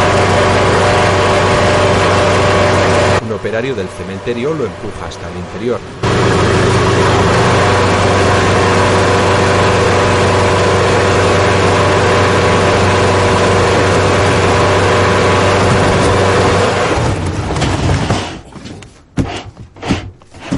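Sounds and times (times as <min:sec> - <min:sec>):
forklift engine droning: 0:00.0 - 0:17.9
speech: 0:03.4 - 0:07.2
clunks and scrapes: 0:15.6 - 0:20.5.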